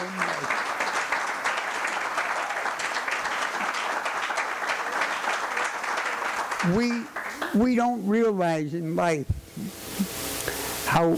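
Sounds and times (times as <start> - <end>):
audience applause: 0.0 - 8.4
speech: 6.6 - 9.8, 11.0 - 11.1.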